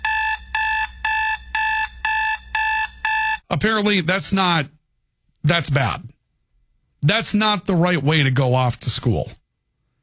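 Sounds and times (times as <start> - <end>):
electronic alarm clock beeping: 0.0 - 3.4
speech: 3.6 - 4.8, 5.4 - 6.1, 7.0 - 9.4.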